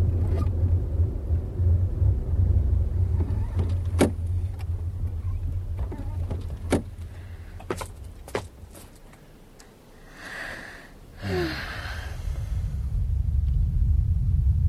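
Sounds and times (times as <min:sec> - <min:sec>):
deep volcanic rumbling from inside the mountain: 0:00.0 - 0:08.7, 0:11.2 - 0:14.6
car engine labouring uphill toward a mountain ridge: 0:00.0 - 0:14.6
sharp clicks and knocks: 0:03.2 - 0:09.7.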